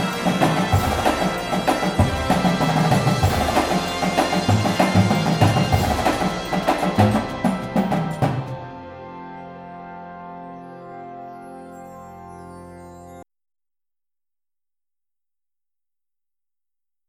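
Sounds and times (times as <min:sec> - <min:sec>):
full drumline: 0:00.0 - 0:08.6
music: 0:00.0 - 0:13.2.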